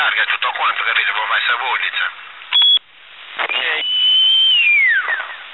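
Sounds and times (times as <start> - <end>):
speech: 0.1 - 2.3
person whistling: 3.8 - 5.2.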